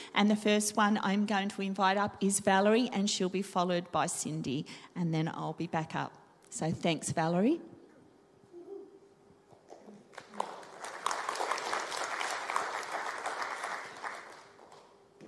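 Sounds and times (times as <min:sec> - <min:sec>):
speech: 0:00.2 - 0:07.7
audience clapping: 0:10.0 - 0:15.2.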